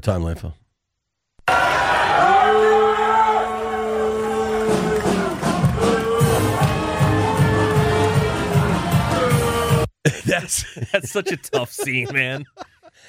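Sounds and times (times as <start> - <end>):
speech: 0.0 - 0.6, 10.5 - 12.7
crowd booing: 1.4 - 9.9
crowd jeering: 1.5 - 9.9, 11.1 - 12.6
laughter: 10.1 - 13.0.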